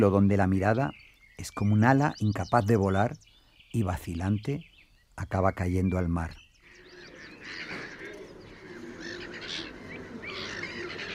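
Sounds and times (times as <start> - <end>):
speech: 0.0 - 6.4
black-headed gull Croicocephalus ridibundus calls: 6.7 - 11.1.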